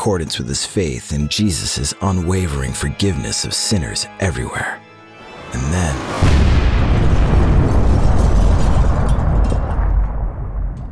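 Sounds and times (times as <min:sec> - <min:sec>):
speech: 0:00.0 - 0:04.8, 0:05.5 - 0:06.4
car bomb explosion: 0:06.0 - 0:10.9.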